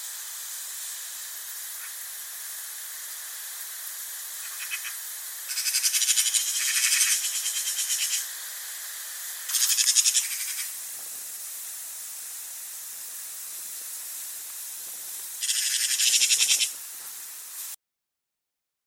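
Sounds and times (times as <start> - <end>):
hiss: 0.0 - 17.8
Eurasian magpie chatter: 4.4 - 8.2, 9.5 - 10.7, 15.4 - 16.7.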